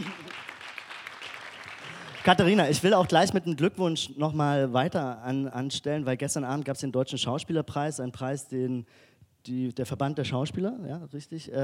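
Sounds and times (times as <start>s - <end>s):
applause: 0.0s - 2.8s
speech: 2.2s - 11.6s.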